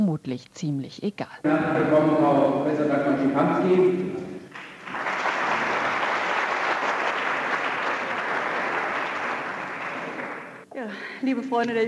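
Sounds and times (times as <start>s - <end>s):
speech: 0.1s - 4.3s, 10.8s - 11.8s
applause from Thuringian Junge Union members welcoming a professor: 4.5s - 10.6s.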